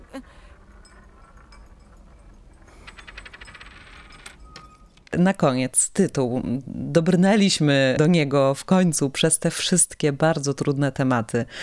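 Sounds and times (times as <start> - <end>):
coins being counted out and dropped: 0.2 - 5.1
speech: 5.1 - 11.6.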